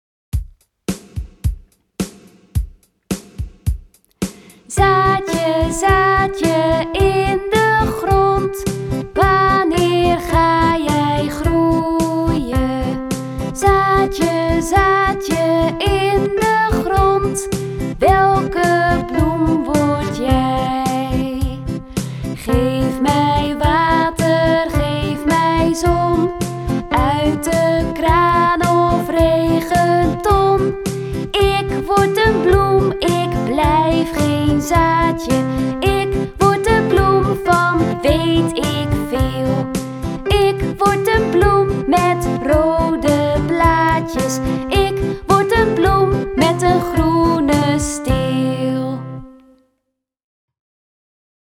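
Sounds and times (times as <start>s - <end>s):
instrumental accompaniment: 0.4s - 49.5s
person singing a lied: 4.3s - 49.5s.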